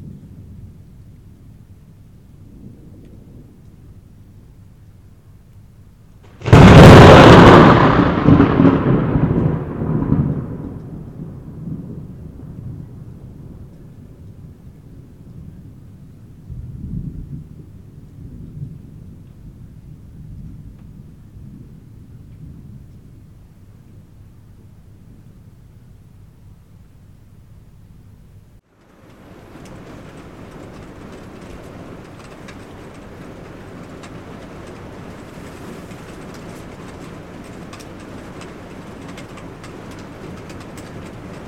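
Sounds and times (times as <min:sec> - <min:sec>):
thunder: 0:02.3 - 0:04.2, 0:06.2 - 0:24.1, 0:28.8 - 0:41.4.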